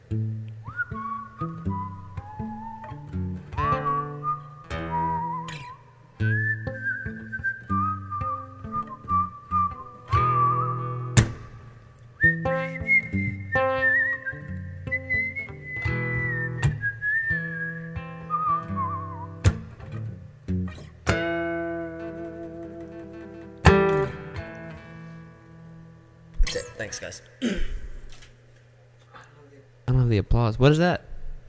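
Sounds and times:
strummed or plucked instrumental accompaniment: 0.0s - 26.5s
song melody carried by whistling: 0.6s - 11.6s, 12.2s - 19.4s
speech: 26.9s - 27.6s, 30.3s - 31.1s.

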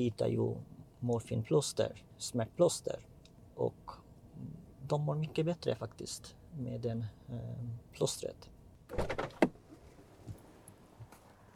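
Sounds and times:
speech: 0.0s - 9.3s
car door as nurse exits car: 8.9s - 10.4s.

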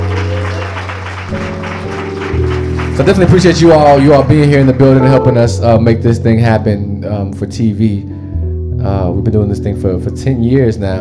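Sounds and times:
crowd applauding and cheering: 0.0s - 5.6s
speech: 3.0s - 8.2s, 8.8s - 10.9s
low sustained organ-like chords: 4.8s - 5.9s.

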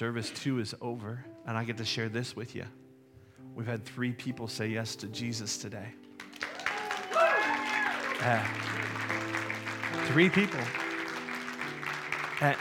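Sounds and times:
speech: 0.0s - 2.8s, 3.5s - 6.0s, 8.2s - 10.8s, 12.4s - 12.5s
church audience clapping: 6.2s - 12.5s.

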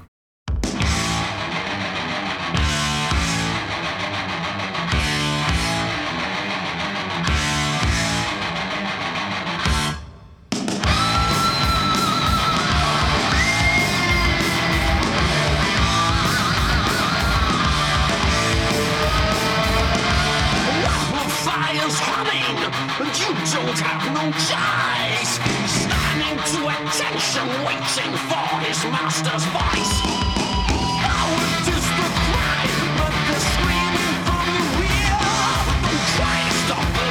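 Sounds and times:
heavy metal song: 0.6s - 37.0s.

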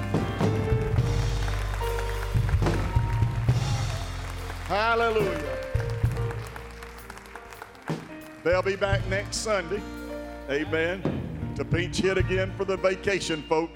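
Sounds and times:
audience clapping hands: 0.0s - 9.9s
speech: 4.7s - 5.5s, 8.4s - 13.7s.

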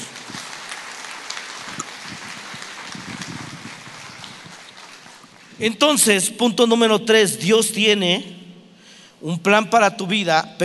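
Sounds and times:
audience applauding: 0.0s - 5.6s
speech: 5.6s - 8.4s, 9.2s - 10.6s.

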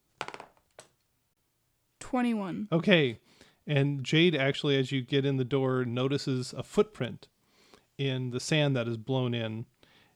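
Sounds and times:
dice rolling: 0.2s - 1.0s
speech: 2.1s - 7.3s, 8.0s - 9.7s.

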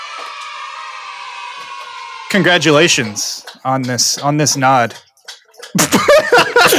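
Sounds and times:
speech: 2.3s - 5.1s, 5.8s - 6.7s
dog lapping water: 3.4s - 6.0s
laughter: 5.7s - 6.7s.

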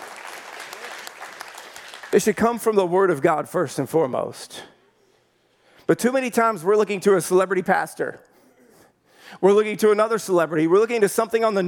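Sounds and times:
audience clapping: 0.0s - 2.5s
speech: 2.1s - 4.7s, 5.9s - 8.3s, 9.3s - 11.6s.

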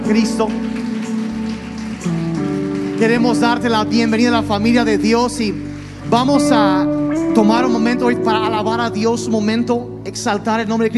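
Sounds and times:
audience applauding: 0.0s - 6.9s
speech: 0.1s - 0.9s, 3.0s - 10.9s.

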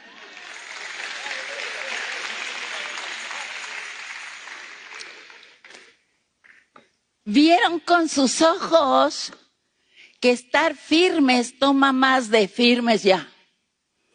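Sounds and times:
audience applause: 0.0s - 5.9s
speech: 7.3s - 9.4s, 10.2s - 13.3s.

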